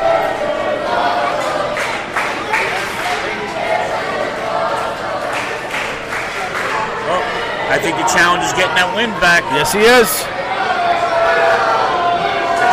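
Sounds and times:
wrestling-match crowd cheering: 0.0 - 12.7
speech: 7.9 - 10.4.

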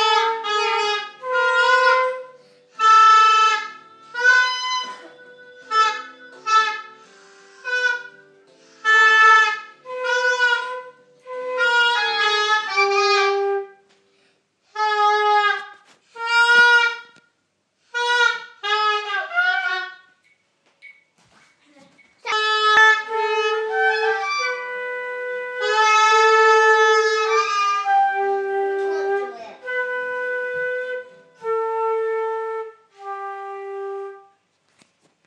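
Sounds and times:
flute: 0.0 - 13.9, 22.2 - 34.4
oboe: 0.0 - 13.9, 14.7 - 17.2, 17.9 - 20.1, 22.2 - 34.4.

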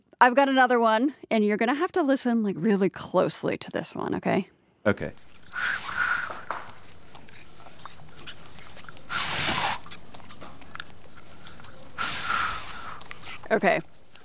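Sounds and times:
speech: 0.2 - 5.8, 13.5 - 13.9
anteater slurping ants with its tongue: 5.1 - 14.2
anteater breathy hissing bursts: 5.4 - 6.8, 9.0 - 9.9, 12.0 - 13.4.

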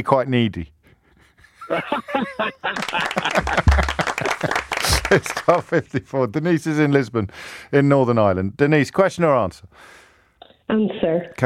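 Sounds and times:
speech: 0.0 - 0.8, 1.7 - 10.0, 10.7 - 11.4
laughter: 1.4 - 6.3
round of applause: 2.3 - 5.9.

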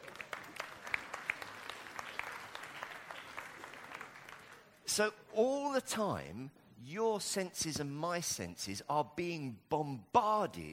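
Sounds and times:
audience clapping: 0.0 - 4.9
speech: 5.0 - 10.7.

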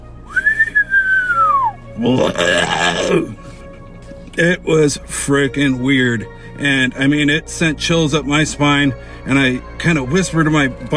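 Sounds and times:
person imitating an inhale whistle: 0.3 - 3.2
person imitating a guttural growl: 2.0 - 3.4
speech: 2.0 - 3.4, 4.4 - 10.9.

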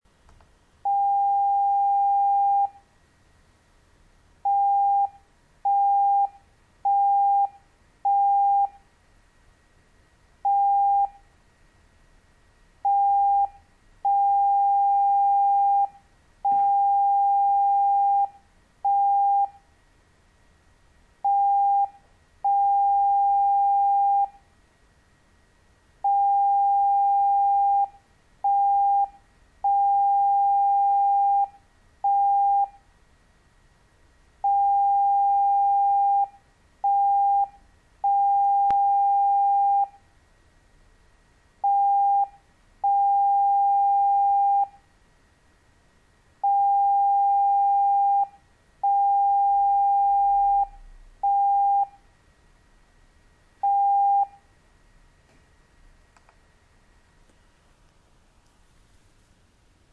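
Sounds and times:
morse code beeps: 0.9 - 2.8, 4.5 - 8.8, 10.5 - 11.2, 12.9 - 15.9, 16.5 - 19.6, 21.3 - 24.4, 26.1 - 29.1, 29.7 - 32.7, 34.5 - 40.0, 41.6 - 42.3, 42.9 - 44.8, 46.4 - 52.0, 53.6 - 54.4.

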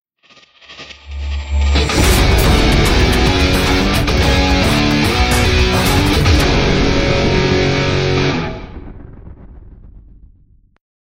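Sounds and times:
background music for logo animation video: 1.2 - 8.7.

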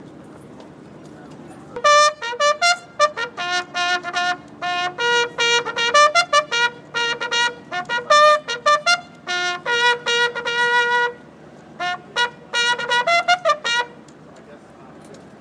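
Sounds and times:
bugler playing on Tower Wharf: 1.8 - 14.0.

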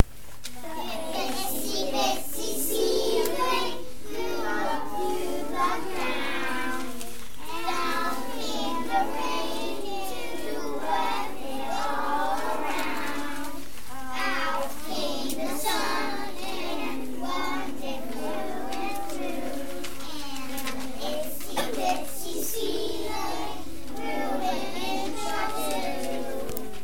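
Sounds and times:
children's song: 0.0 - 26.8.

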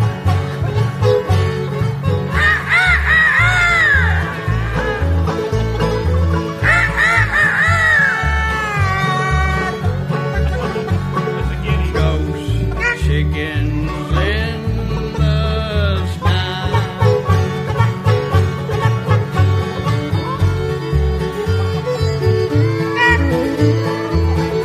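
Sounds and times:
beat-driven musical backing: 0.0 - 24.6
chickens squawking and clucking as a story sound effect: 2.2 - 13.0, 21.8 - 24.4
laughter: 2.2 - 24.6.

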